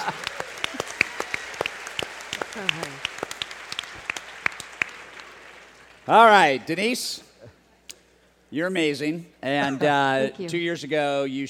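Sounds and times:
audience applause: 0:00.0 - 0:06.4
voice over clapping: 0:02.3 - 0:03.3
speech: 0:06.1 - 0:07.3, 0:08.5 - 0:11.4.

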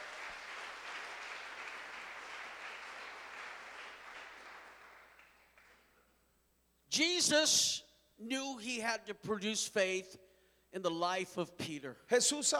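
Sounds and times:
church congregation applauding in praise of the Lord: 0:00.0 - 0:06.0
speech: 0:07.0 - 0:12.5.

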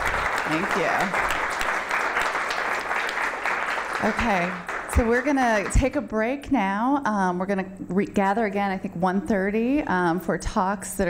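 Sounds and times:
audience applause: 0:00.0 - 0:05.8
speech: 0:00.5 - 0:01.4, 0:04.0 - 0:11.0.

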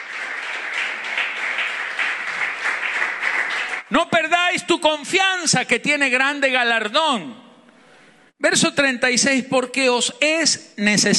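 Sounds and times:
audience applause: 0:00.0 - 0:03.9
speech: 0:03.9 - 0:07.4, 0:08.4 - 0:11.1.

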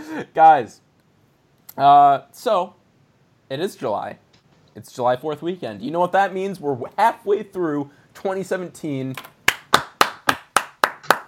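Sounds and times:
speech: 0:00.2 - 0:00.8, 0:01.8 - 0:02.8, 0:03.5 - 0:04.2, 0:04.8 - 0:09.4
hand claps: 0:09.2 - 0:11.2.

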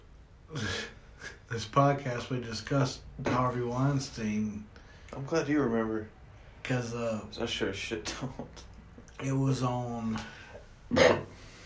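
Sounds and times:
speech: 0:01.5 - 0:11.3
sudden stifled burp: 0:10.9 - 0:11.4.

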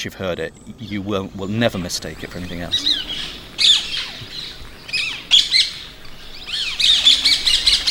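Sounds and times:
speech: 0:00.0 - 0:03.4
ringneck parakeets giving shrieking calls: 0:01.9 - 0:07.8.

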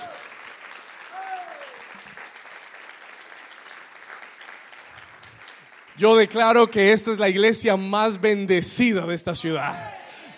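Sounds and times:
loud audience applause: 0:00.0 - 0:06.8
speech: 0:06.0 - 0:10.3.

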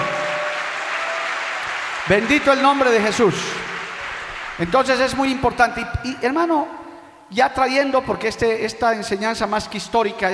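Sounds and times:
audience applause: 0:00.0 - 0:05.0
speech: 0:02.1 - 0:03.7, 0:04.6 - 0:10.3.

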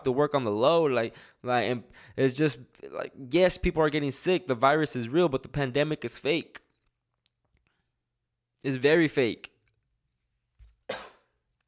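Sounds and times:
speech: 0:00.0 - 0:06.6, 0:08.6 - 0:09.5
cough: 0:10.9 - 0:11.4.

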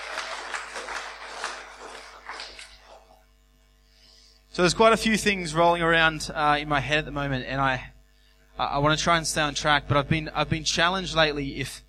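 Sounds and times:
audience clapping: 0:00.0 - 0:03.2
speech: 0:04.6 - 0:07.9, 0:08.6 - 0:11.8.

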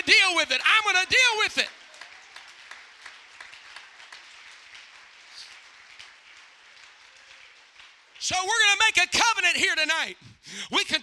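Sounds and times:
audience clapping hands: 0:00.5 - 0:09.0
speech: 0:08.3 - 0:11.0.

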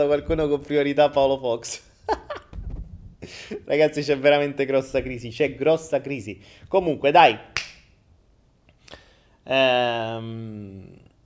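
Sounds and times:
speech: 0:00.0 - 0:02.3, 0:03.2 - 0:07.6, 0:09.5 - 0:11.0
hand clap: 0:07.6 - 0:07.9.

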